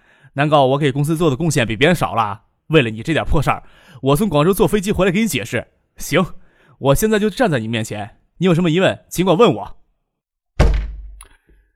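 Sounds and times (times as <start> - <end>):
speech: 0.4 - 9.8
hand slamming down on office desk: 10.6 - 11.6.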